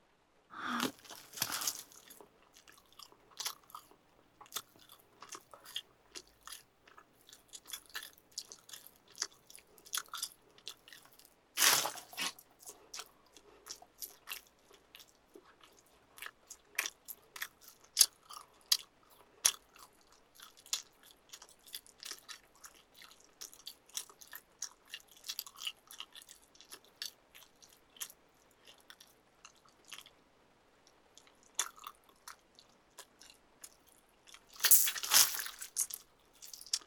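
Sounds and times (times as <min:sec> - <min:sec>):
chewing and biting into food with a bone: 0:00.6 - 0:36.8
crinkling: 0:00.7 - 0:09.6, 0:10.7 - 0:12.4, 0:34.6 - 0:36.8.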